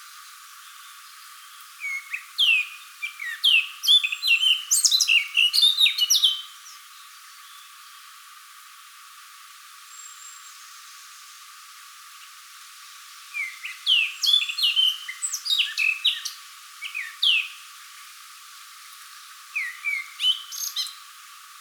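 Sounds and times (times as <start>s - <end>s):
Eurasian blackcap fast varied chirps and slurred whistles: 1.8s - 6.5s, 13.4s - 17.6s, 19.6s - 21.0s.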